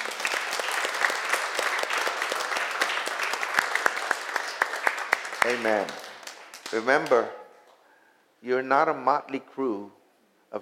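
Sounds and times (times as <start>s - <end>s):
audience hand clapping: 0.0s - 7.3s
speech: 5.5s - 6.0s, 6.7s - 7.4s, 8.4s - 10.5s.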